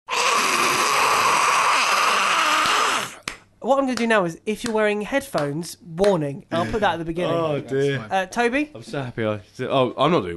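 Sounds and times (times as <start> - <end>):
voice imitating a fire-breathing dragon roar: 0.1 - 3.2
speech: 3.6 - 10.3.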